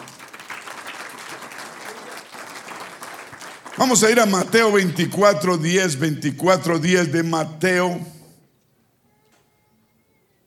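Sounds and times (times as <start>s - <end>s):
audience applause: 0.0s - 4.9s
speech: 3.8s - 8.1s.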